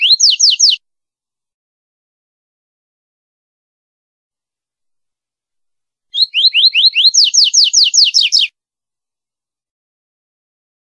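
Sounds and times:
double-collared seedeater whistled song: 0.0 - 0.8, 6.1 - 8.5.

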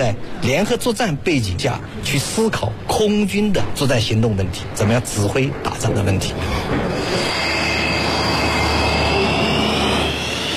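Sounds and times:
speech: 0.0 - 7.4
fighter jets roaring in a military air exercise: 6.4 - 10.5.

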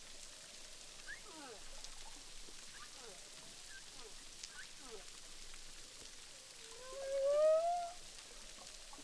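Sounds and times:
humpback whale song recorded underwater with a hydrophone at Boucan Canot, Réunion Island: 6.7 - 8.0.

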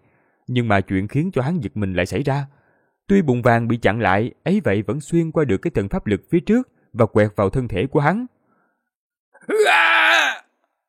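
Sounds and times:
speech: 0.5 - 8.4, 9.4 - 10.0
man screaming in pain sound effect: 9.4 - 10.5.

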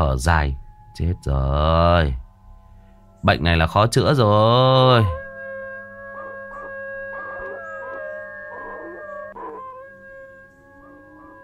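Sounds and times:
speech: 0.0 - 2.2, 3.2 - 5.2
person howling in a forest at night: 4.4 - 11.4.

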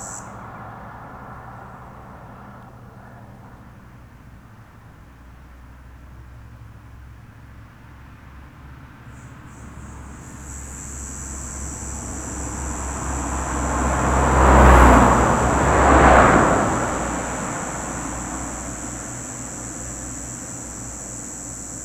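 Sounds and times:
cicadas buzzing in plane trees: 0.0 - 3.6, 8.8 - 21.8.

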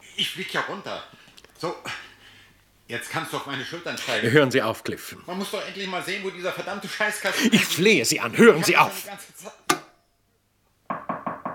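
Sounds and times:
speech: 0.2 - 2.0, 2.9 - 9.7
laughter: 6.7 - 9.1
knocking on a door: 10.9 - 11.5.

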